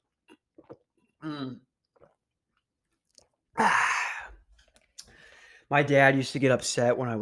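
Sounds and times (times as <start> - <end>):
loud water drinking and swallowing: 0.2 - 5.2
speech: 1.2 - 1.7, 5.7 - 7.2.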